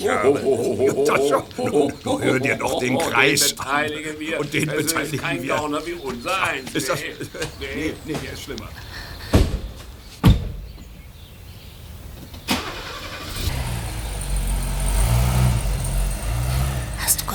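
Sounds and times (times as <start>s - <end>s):
speech: 0.0s - 9.0s
laughter: 0.0s - 9.3s
knocks and thuds: 9.3s - 10.9s
small car engine rumble arriving: 12.4s - 17.3s.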